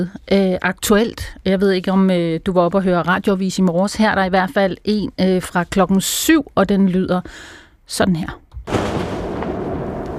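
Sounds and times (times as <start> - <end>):
speech: 0.0 - 8.9
explosions from a late-night Israeli airstrike in southern Lebanon: 8.7 - 10.1.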